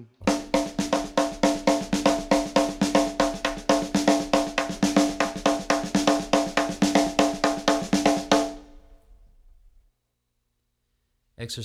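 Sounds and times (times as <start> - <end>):
samba snare drum on a drumset: 0.2 - 9.0.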